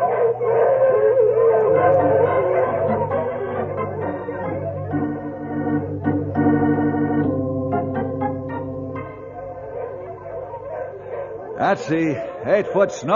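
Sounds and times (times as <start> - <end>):
sled dogs yipping: 0.0 - 5.1, 9.1 - 13.0
sled dogs howling: 0.0 - 6.8, 7.4 - 13.1
speech: 11.7 - 13.1.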